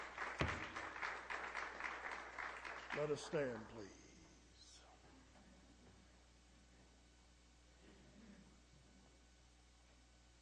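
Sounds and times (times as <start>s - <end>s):
audience applause: 0.0s - 3.9s
speech: 3.0s - 4.0s.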